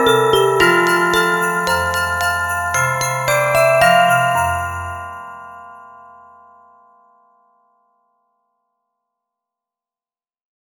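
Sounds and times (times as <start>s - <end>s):
Christmas song: 0.0s - 6.7s.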